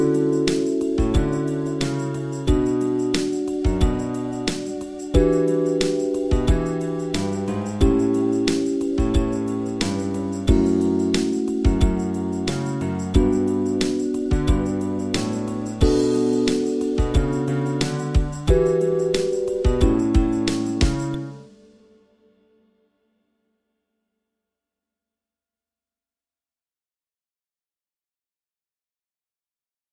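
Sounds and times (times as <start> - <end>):
fretless bass groove: 0.0 - 21.4.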